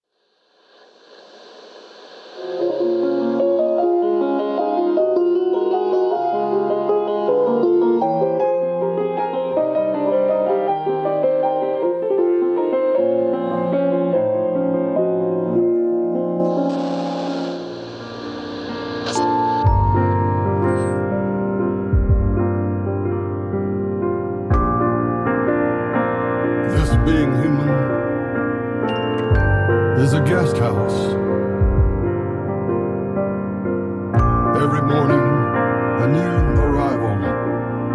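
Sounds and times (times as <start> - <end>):
instrumental music: 1.8 - 37.9.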